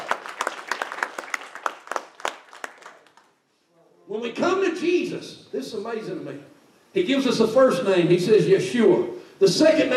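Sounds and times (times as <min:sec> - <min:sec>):
audience hand clapping in praise: 0:00.0 - 0:03.4
speech: 0:04.1 - 0:09.9.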